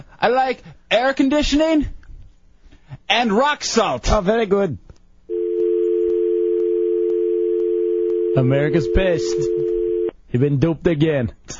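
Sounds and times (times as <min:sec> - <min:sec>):
speech: 0:00.2 - 0:02.0, 0:03.1 - 0:04.9, 0:08.4 - 0:09.7, 0:10.3 - 0:11.5
telephone dial tone: 0:05.3 - 0:10.1.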